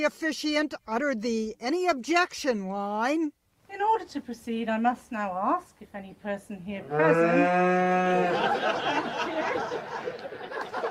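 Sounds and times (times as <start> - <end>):
speech: 0.0 - 10.8
cow mooing in a neighbouring field during an English country wedding: 6.8 - 8.3
wedding guests laughing and chuckling: 8.0 - 10.8.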